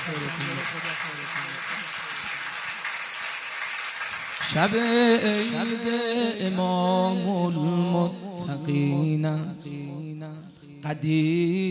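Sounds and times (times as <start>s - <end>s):
audience applause at an Eid al-Ghadir religious gathering: 0.0s - 5.8s
speech: 0.1s - 2.1s, 4.4s - 11.7s.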